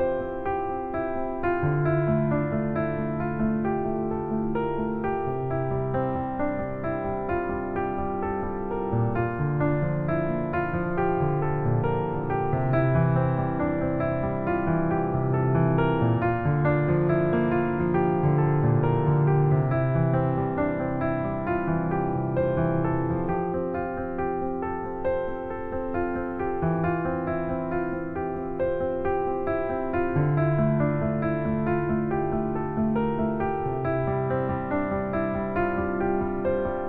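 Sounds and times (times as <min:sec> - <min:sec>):
sleepy piano: 0:00.0 - 0:36.8.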